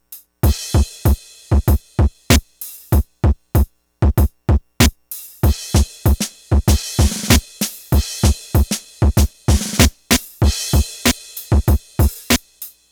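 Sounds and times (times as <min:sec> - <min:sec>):
drum kit: 0:00.0 - 0:12.9.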